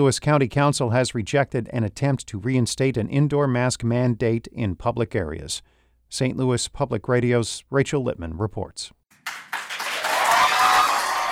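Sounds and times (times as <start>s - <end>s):
speech: 0.0s - 9.0s
crowd applause after council vote: 9.1s - 11.3s.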